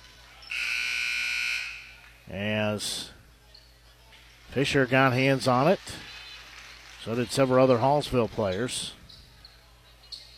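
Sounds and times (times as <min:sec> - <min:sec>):
referee's whistle: 0:00.5 - 0:02.0
speech: 0:02.3 - 0:03.2, 0:04.5 - 0:06.1, 0:07.0 - 0:09.0.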